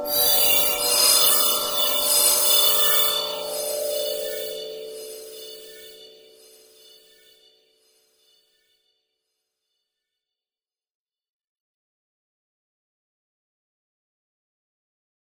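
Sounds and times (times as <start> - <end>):
ambience: 0.0 - 7.4.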